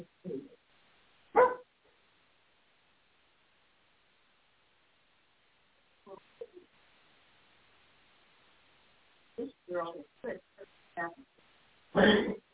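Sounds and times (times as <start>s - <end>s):
dog barking outside: 1.3s - 1.7s
speech: 9.4s - 12.4s.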